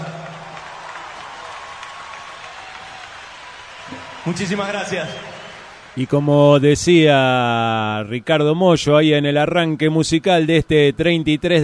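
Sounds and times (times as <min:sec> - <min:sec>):
audience applause: 0:00.0 - 0:06.9
speech: 0:04.0 - 0:05.4, 0:06.0 - 0:11.6.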